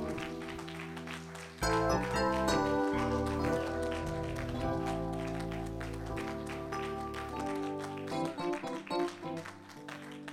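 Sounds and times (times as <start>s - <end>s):
audience clapping hands: 0.0s - 10.3s.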